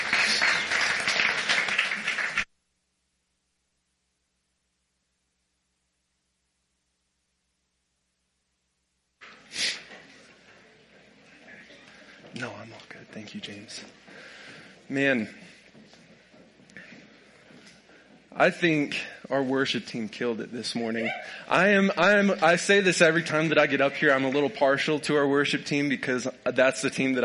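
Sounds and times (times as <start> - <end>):
audience applauding worship team: 0.0 - 2.5
speech: 13.1 - 14.3, 14.9 - 15.5, 18.4 - 27.2.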